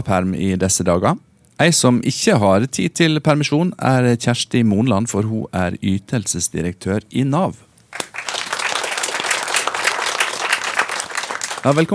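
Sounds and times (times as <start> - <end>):
speech: 0.0 - 8.1, 11.6 - 11.9
audience applause: 7.9 - 11.9.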